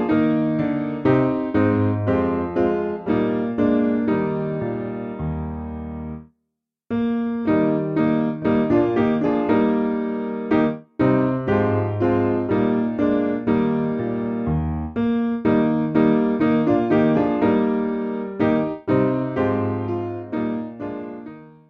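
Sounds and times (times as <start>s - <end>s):
piano piece: 0.0s - 6.3s, 6.9s - 21.6s.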